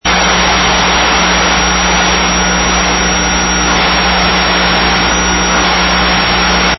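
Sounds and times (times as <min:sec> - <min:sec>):
pink noise: 0:00.0 - 0:06.7.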